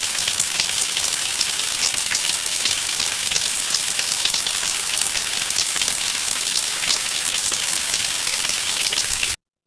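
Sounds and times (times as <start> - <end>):
rain: 0.0 - 9.4.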